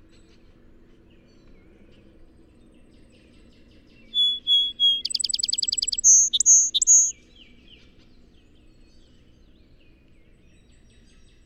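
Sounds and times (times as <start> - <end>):
Song Sparrow singing: 4.0 - 7.1.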